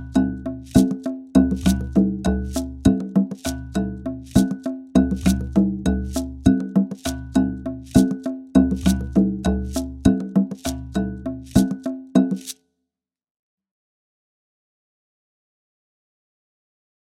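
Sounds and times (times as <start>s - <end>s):
Latin American music at 100 bpm: 0.0s - 12.5s.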